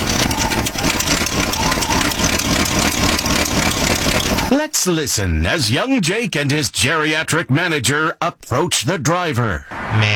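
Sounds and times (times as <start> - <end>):
junky old car engine idling: 0.0 - 4.5
speech: 4.5 - 10.1.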